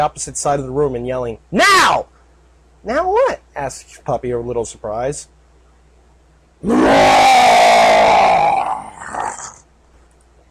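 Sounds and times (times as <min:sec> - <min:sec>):
speech: 0:00.0 - 0:02.1, 0:02.8 - 0:05.4, 0:06.6 - 0:07.6
manticore snarling: 0:06.6 - 0:09.6.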